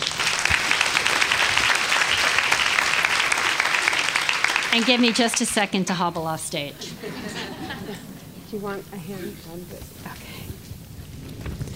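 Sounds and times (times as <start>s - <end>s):
large audience clapping welcoming a speaker on stage: 0.0s - 6.2s
speech: 4.7s - 7.8s, 8.5s - 10.3s
laughter: 6.7s - 9.4s.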